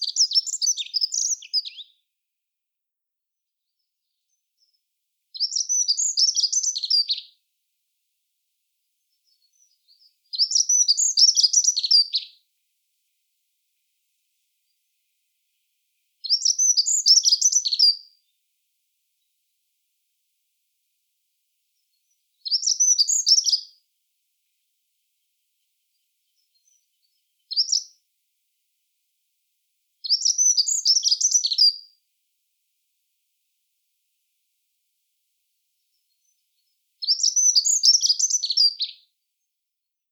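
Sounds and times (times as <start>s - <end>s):
accenteur mouchet singing: 0.0s - 2.0s, 5.4s - 7.3s, 9.0s - 12.4s, 16.2s - 18.1s, 21.9s - 23.7s, 25.9s - 28.0s, 30.0s - 31.8s, 35.9s - 39.1s.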